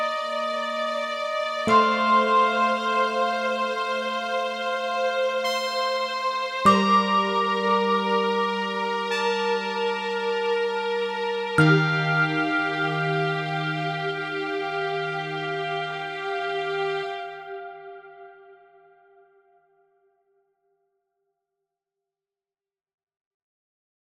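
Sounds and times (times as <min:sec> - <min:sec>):
mouse-sized orchestra playing: 0:00.0 - 0:18.4.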